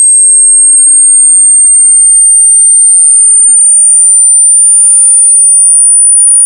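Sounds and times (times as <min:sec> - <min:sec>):
audible tone sweep: 0:00.0 - 0:06.3.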